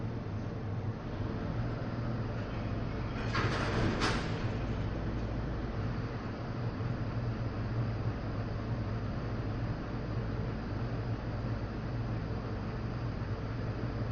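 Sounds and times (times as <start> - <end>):
city ambience: 0.2 - 13.9
garbage truck: 1.0 - 7.7.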